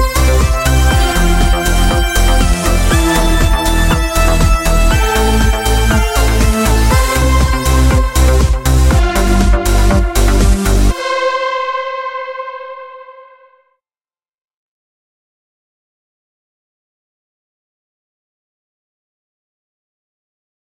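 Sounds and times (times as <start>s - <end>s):
trance music mix: 0.0s - 13.6s.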